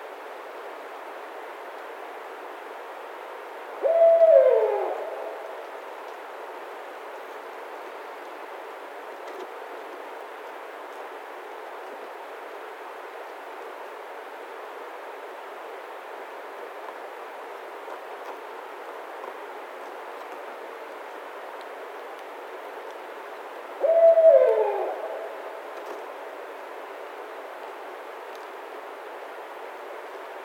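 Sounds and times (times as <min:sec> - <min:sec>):
Barred Owl calling: 0:03.8 - 0:05.6, 0:23.8 - 0:25.7.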